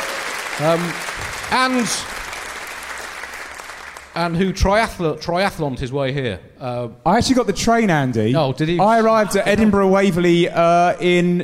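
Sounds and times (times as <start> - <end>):
audience applause: 0.0 - 4.4
speech: 0.6 - 2.2, 4.2 - 11.4.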